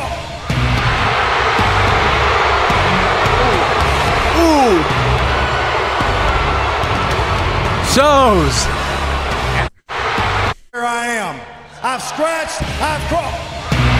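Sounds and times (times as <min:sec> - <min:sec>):
huge arena crowd booing: 0:00.5 - 0:10.5
speech: 0:08.0 - 0:08.8, 0:10.8 - 0:13.6.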